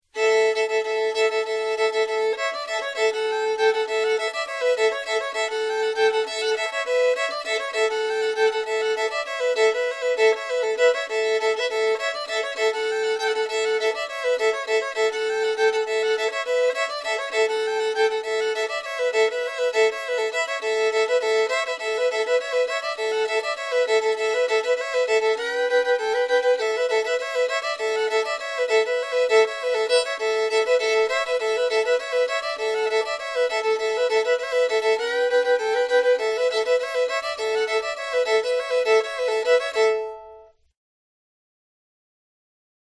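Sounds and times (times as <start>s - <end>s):
fiddle: 0.0s - 40.8s.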